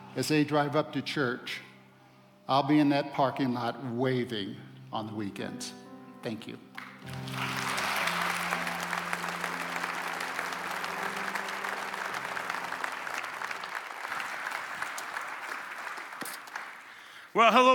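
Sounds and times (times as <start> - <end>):
speech: 0.2 - 1.7, 2.5 - 7.5, 17.4 - 17.7
low sustained musical tones: 3.4 - 14.9
audience applause: 6.8 - 17.2.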